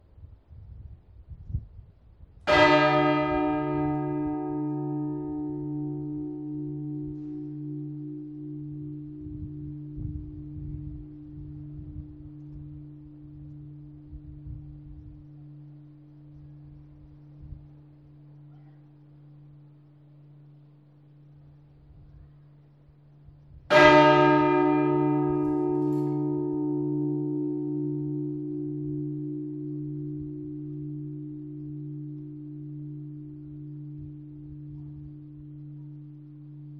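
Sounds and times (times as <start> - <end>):
bell: 2.5 - 17.2, 23.7 - 36.7.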